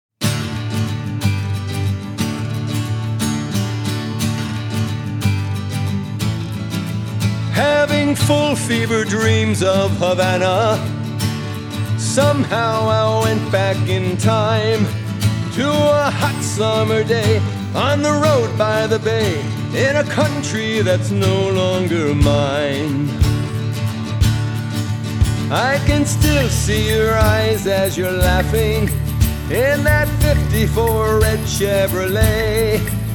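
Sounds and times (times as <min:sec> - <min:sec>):
guitar: 0:00.2 - 0:33.1.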